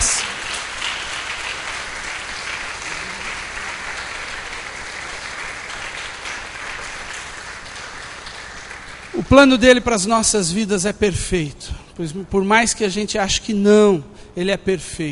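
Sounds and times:
church congregation clapping during a service: 0.0 - 10.9
speech: 9.2 - 15.1.

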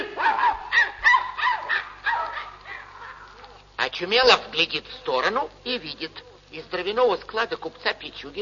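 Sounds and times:
dog barking and whimpering: 0.2 - 3.6
speech: 4.0 - 8.4.

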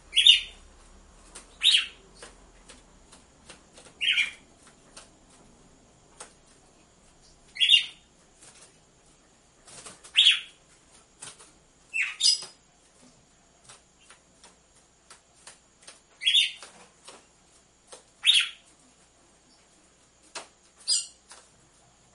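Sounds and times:
red-cowled cardinal giving buzzy chirps: 0.0 - 4.8, 6.6 - 12.8, 16.1 - 16.8, 17.9 - 20.0, 20.7 - 22.1.

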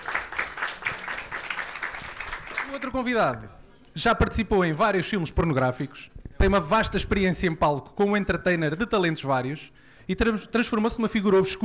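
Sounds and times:
audience applause: 0.0 - 2.9
speech: 2.7 - 11.6.

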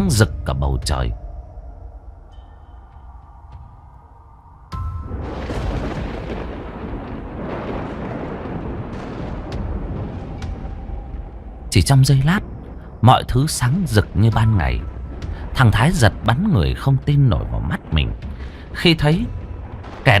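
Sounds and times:
thunder rumbling: 0.0 - 20.1
speech: 0.1 - 1.2, 11.8 - 15.0, 15.6 - 19.4
lightning strike: 4.7 - 20.1.

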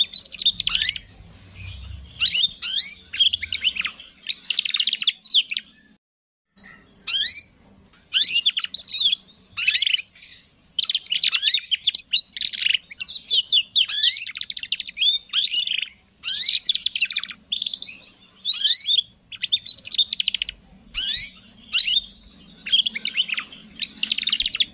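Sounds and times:
canary in full song with rapid trills and twittering: 0.0 - 24.7.

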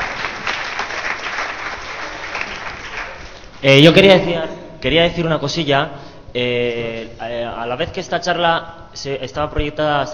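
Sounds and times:
audience applause at a talk during a hacklab event: 0.0 - 3.4
speech: 3.6 - 10.1.

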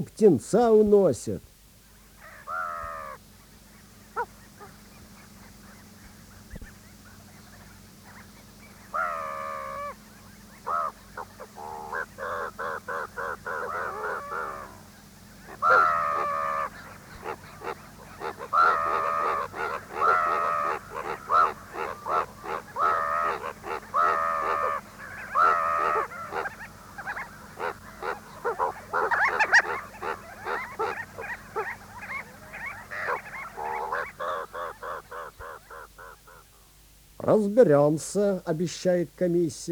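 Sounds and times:
speech: 0.0 - 1.5, 37.3 - 39.7
crows cawing: 2.2 - 3.2, 8.8 - 36.7.

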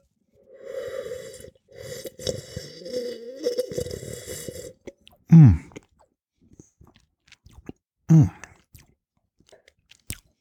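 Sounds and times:
slurping wine while tasting: 0.4 - 6.0, 6.6 - 8.9.

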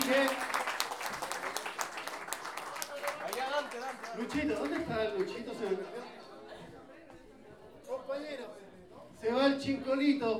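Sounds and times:
audience clapping after raffle tickets sold: 0.0 - 6.1
speech: 4.2 - 6.2, 9.6 - 10.3.

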